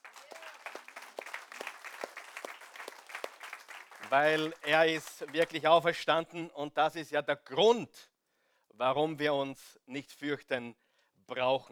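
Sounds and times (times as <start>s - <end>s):
audience applause: 0.0s - 5.6s
speech: 4.1s - 8.1s, 8.8s - 11.7s.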